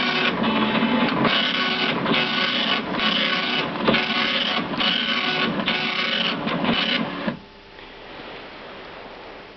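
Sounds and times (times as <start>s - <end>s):
1980s telex machine: 0.0s - 7.4s.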